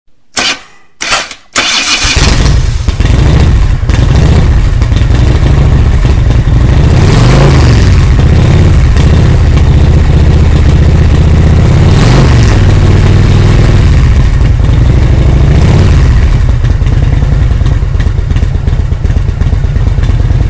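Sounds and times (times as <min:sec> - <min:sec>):
motor scooter: 0:00.4 - 0:11.3, 0:12.4 - 0:20.4.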